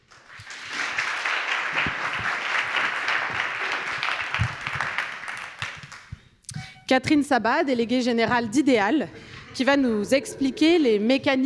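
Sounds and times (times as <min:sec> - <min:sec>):
audience applause: 0:00.0 - 0:06.1
speech: 0:06.9 - 0:11.4.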